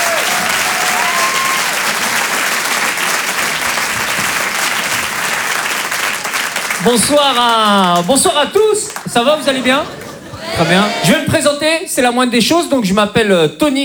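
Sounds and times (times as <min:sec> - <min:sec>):
laughter: 0:00.0 - 0:05.4, 0:08.9 - 0:11.5
comedy club audience applause: 0:00.0 - 0:11.3
speech: 0:06.8 - 0:13.8.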